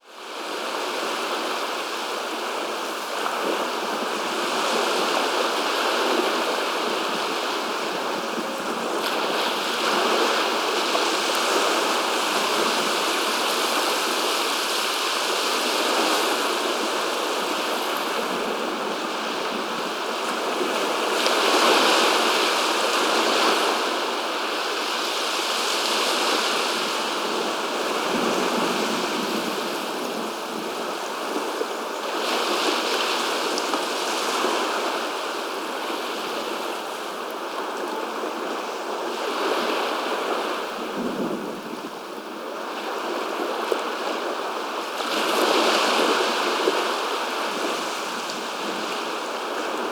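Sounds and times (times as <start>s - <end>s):
ocean waves: 0.1s - 49.9s.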